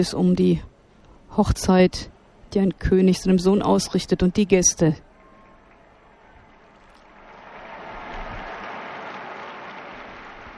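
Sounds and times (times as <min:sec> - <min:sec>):
speech: 0:00.0 - 0:00.7, 0:01.4 - 0:05.1
large crowd applauding: 0:05.1 - 0:10.5.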